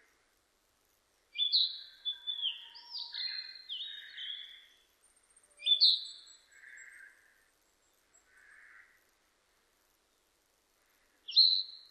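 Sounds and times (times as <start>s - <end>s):
Narcissus flycatcher singing varied whistles and trills: 1.4s - 4.8s, 5.6s - 6.5s, 11.3s - 11.8s.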